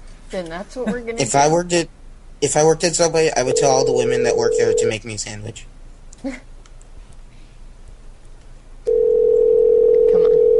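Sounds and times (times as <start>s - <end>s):
speech: 0.3s - 6.5s
phone line blip: 3.4s - 4.9s, 8.9s - 10.5s.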